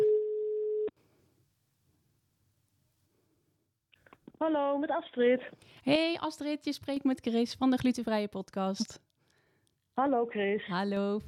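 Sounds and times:
telephone ringing tone while calling: 0:00.0 - 0:00.9
speech: 0:04.4 - 0:09.0, 0:10.0 - 0:11.2.

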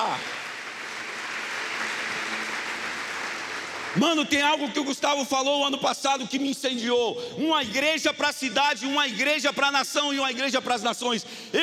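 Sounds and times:
applause: 0:00.0 - 0:05.0
speech: 0:03.9 - 0:11.6.

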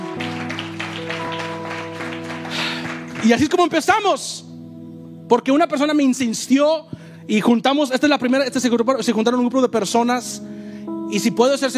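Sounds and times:
audience applause: 0:00.0 - 0:03.6
speech: 0:03.2 - 0:04.4, 0:05.3 - 0:11.7.

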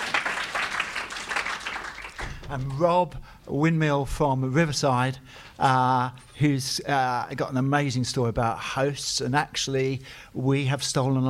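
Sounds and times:
audience round of applause: 0:00.0 - 0:02.5
speech: 0:02.5 - 0:11.2.

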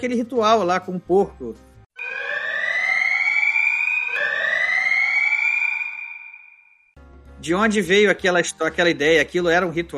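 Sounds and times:
speech: 0:00.0 - 0:01.7, 0:07.4 - 0:09.9
spoiler alarm bell sound effect with rising wailing tones: 0:02.0 - 0:06.9.

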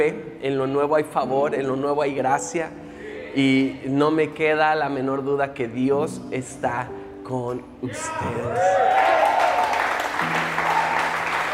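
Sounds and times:
speech: 0:00.0 - 0:09.2
audience applauding: 0:08.5 - 0:11.5.

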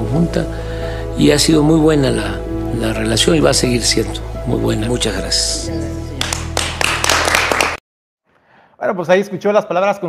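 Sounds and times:
speech: 0:00.1 - 0:06.0, 0:08.9 - 0:10.0
applause at end of speech: 0:06.2 - 0:07.8.

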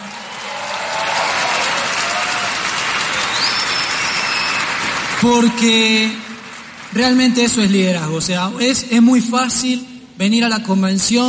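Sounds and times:
audience applause: 0:00.0 - 0:07.7
speech: 0:05.2 - 0:06.3, 0:07.0 - 0:11.2.

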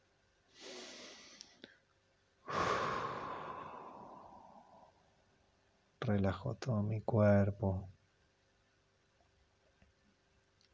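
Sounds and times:
deep breath in during guided breathing exercise: 0:00.5 - 0:01.8, 0:02.4 - 0:05.2
long exhalation through the mouth in guided breathing exercise: 0:00.6 - 0:01.6, 0:02.5 - 0:05.0
speech: 0:06.1 - 0:08.0.

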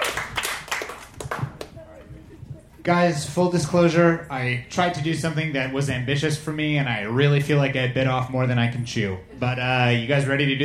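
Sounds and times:
audience clapping hands: 0:00.0 - 0:01.8
speech: 0:02.8 - 0:10.6.

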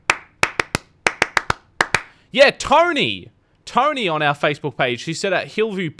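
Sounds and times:
rhythmic school clap pattern of hand claps: 0:00.0 - 0:02.1
speech: 0:02.3 - 0:05.9.

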